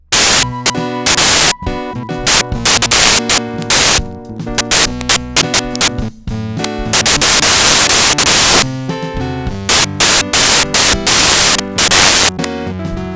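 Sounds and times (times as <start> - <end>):
drums: 0.1 - 13.1
electric piano: 0.1 - 13.1.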